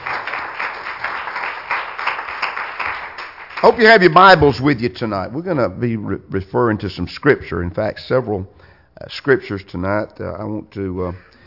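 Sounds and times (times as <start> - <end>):
audience clapping hands in praise: 0.0 - 4.2
speech: 3.6 - 11.4.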